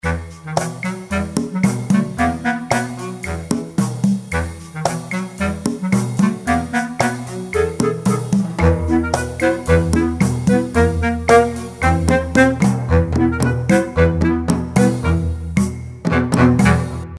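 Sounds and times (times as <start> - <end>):
story music: 0.0 - 17.1.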